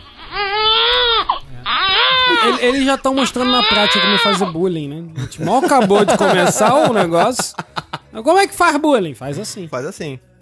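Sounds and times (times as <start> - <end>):
baby crying: 0.0 - 4.6
laughter: 2.3 - 2.9, 5.2 - 8.2
speech: 2.4 - 10.4.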